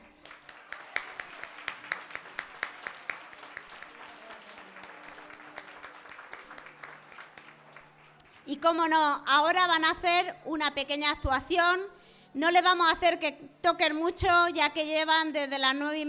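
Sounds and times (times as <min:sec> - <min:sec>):
audience applause: 0:00.0 - 0:08.5
speech: 0:08.5 - 0:16.0.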